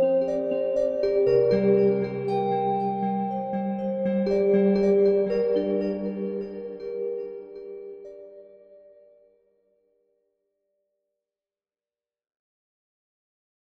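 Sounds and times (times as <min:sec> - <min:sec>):
ice bells: 0:00.0 - 0:09.0.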